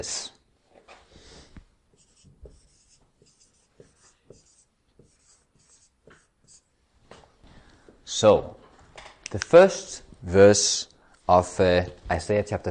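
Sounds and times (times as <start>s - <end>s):
speech: 0.0s - 0.4s, 8.2s - 8.6s, 9.3s - 12.6s
scratchy writing strokes as a Bible verse from Isaiah chapter 58 is written out: 1.9s - 6.8s.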